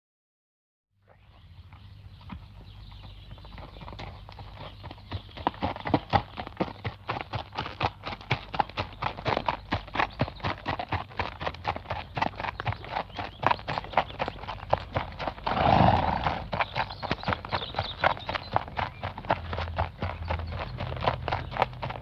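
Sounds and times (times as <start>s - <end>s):
horse hooves walking on gravel: 1.1s - 22.0s
horse snorting: 15.2s - 16.8s.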